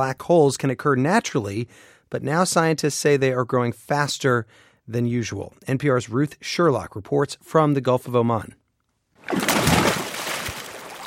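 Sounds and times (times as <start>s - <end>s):
speech: 0.0s - 8.6s
water splashing as someone swims in the sea in the Gulf of Oman: 9.2s - 11.0s.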